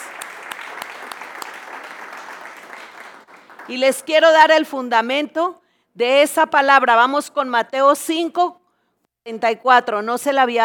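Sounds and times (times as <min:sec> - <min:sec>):
audience applause: 0:00.0 - 0:03.7
speech: 0:03.7 - 0:08.6, 0:09.2 - 0:10.6.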